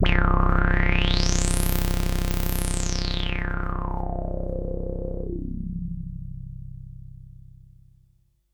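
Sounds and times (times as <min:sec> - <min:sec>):
synthesizer VCO tone: 0:00.0 - 0:06.4.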